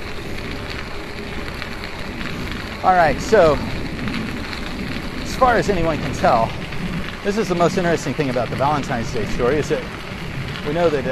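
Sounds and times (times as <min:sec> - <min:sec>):
light rain pattering: 0:00.0 - 0:11.0
speech: 0:02.8 - 0:03.7, 0:05.4 - 0:06.6, 0:07.2 - 0:10.0, 0:10.6 - 0:11.0.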